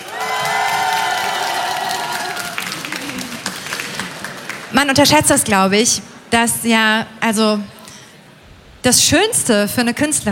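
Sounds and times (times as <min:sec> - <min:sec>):
audience applause: 0:00.0 - 0:04.8
speech: 0:04.7 - 0:07.8, 0:08.8 - 0:10.3.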